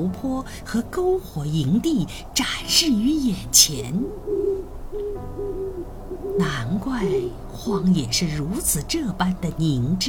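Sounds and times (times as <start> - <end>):
speech: 0.0 - 4.7, 6.4 - 10.0
owl hunting call hoots: 3.6 - 7.4.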